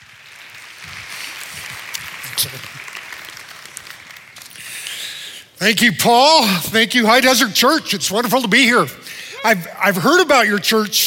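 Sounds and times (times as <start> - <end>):
church audience applause welcoming a speaker to the stage: 0.0 - 5.2
speech: 2.4 - 2.8, 5.6 - 11.0.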